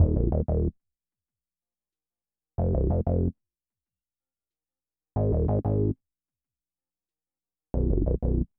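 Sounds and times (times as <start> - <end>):
bass: 0.0 - 0.8, 2.6 - 3.4, 5.2 - 6.0, 7.8 - 8.5.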